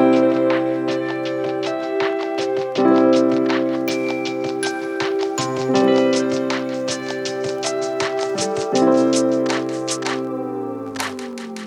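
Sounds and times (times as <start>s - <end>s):
christmas hip hop beat: 0.0s - 11.6s.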